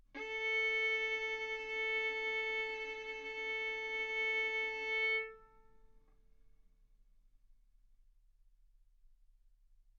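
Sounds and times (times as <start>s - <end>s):
violin arco on A string: 0.0s - 5.8s.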